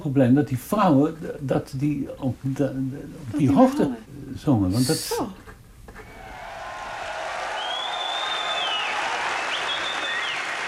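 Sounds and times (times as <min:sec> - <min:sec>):
speech: 0:00.0 - 0:05.4
audience applause: 0:06.2 - 0:10.6.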